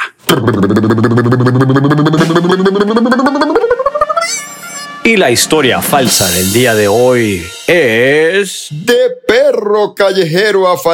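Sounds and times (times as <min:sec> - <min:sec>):
speech: 0:00.5 - 0:03.6, 0:05.1 - 0:10.9
drum roll: 0:02.0 - 0:08.9
cymbal crash: 0:03.8 - 0:08.9.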